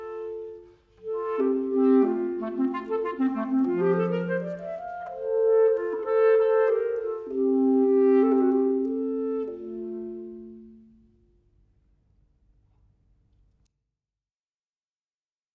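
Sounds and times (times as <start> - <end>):
clarinet playing a classical Larghetto: 0.0 - 11.3.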